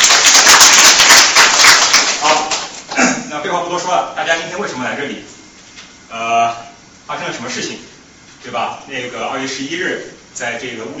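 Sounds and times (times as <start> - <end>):
audience applause: 0.0 - 2.7
speech: 3.8 - 5.4, 6.1 - 10.9.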